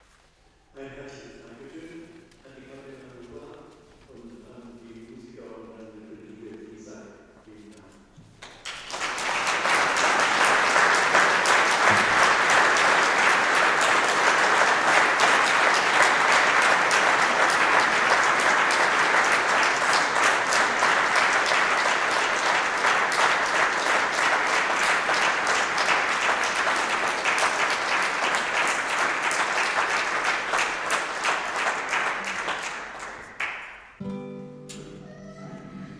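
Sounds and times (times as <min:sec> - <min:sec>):
person speaking: 0:00.7 - 0:08.2, 0:34.7 - 0:35.9
applause: 0:08.3 - 0:34.1.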